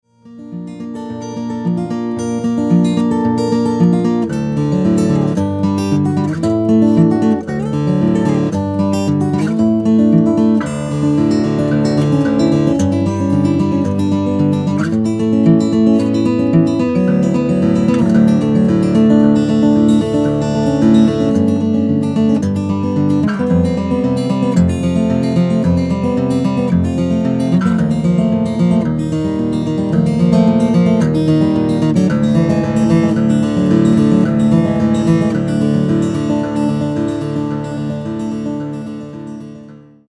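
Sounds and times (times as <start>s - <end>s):
guitar playing: 0.0s - 40.1s.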